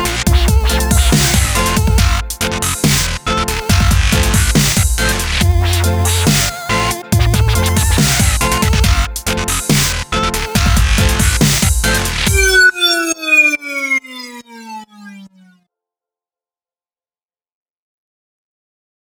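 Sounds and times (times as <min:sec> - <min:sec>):
goofy dubstep intro music: 0:00.0 - 0:14.2.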